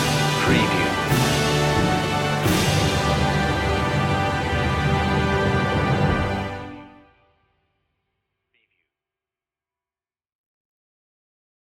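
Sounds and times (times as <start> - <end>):
national anthem: 0.0 - 7.2.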